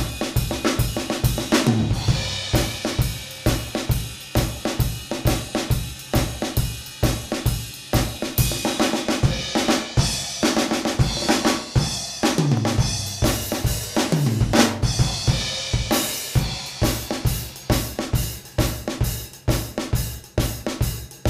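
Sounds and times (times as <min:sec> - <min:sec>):
12/8 blues-style shuffle drum groove: 0:00.0 - 0:21.2.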